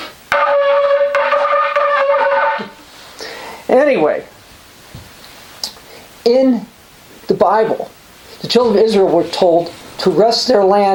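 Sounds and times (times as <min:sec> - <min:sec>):
shofar ram's horn trumpet blown by an unskilled player: 0:00.0 - 0:02.8
speech: 0:03.9 - 0:04.3, 0:07.4 - 0:10.9.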